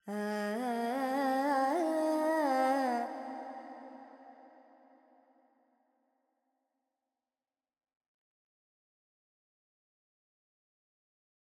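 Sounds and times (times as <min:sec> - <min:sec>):
Carnatic female vocal alaps in G pentatonic: 0:00.0 - 0:04.0.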